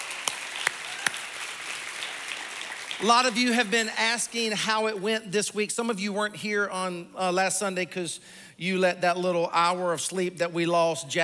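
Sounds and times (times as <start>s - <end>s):
church audience clapping: 0.0s - 5.1s
speech: 3.0s - 11.2s.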